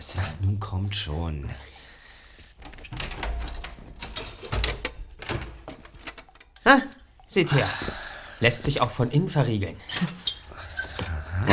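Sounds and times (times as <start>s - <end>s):
speech: 0.0s - 1.8s, 6.6s - 10.2s
old wooden door being opened: 2.4s - 11.5s.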